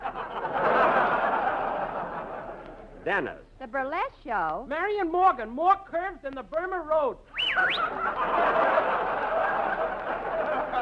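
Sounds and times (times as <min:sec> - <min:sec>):
laughter: 0:00.0 - 0:02.9, 0:07.5 - 0:10.8
speech: 0:03.1 - 0:08.9
whistling: 0:07.3 - 0:08.0.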